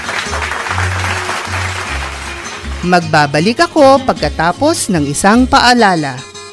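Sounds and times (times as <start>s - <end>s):
students clapping after a class lesson: 0.0s - 2.9s
speech: 2.8s - 6.3s.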